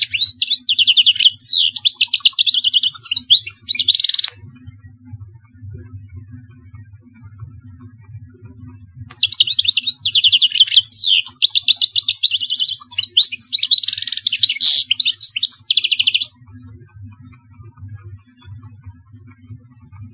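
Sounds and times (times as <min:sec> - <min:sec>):
European goldfinch singing: 0:00.0 - 0:04.3, 0:09.1 - 0:16.3
soft low hum: 0:00.0 - 0:20.1.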